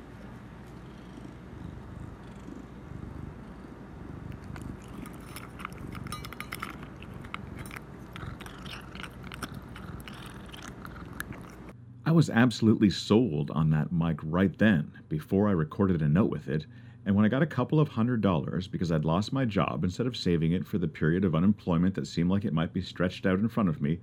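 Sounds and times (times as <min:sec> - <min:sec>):
steady low rumble: 0:00.0 - 0:12.4
cat crunching kibble near the microphone: 0:04.0 - 0:11.8
speech: 0:12.1 - 0:24.0.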